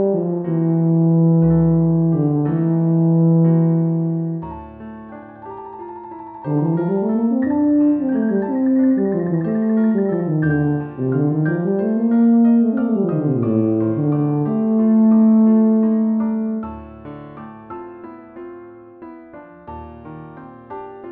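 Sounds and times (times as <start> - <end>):
tuba playing an elegy: 0.0 - 4.6, 6.3 - 16.7.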